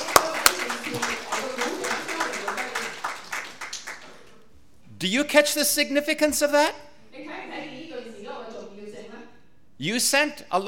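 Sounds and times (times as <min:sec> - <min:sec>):
audience applause: 0:00.0 - 0:04.3
speech: 0:05.0 - 0:06.9, 0:09.8 - 0:10.6.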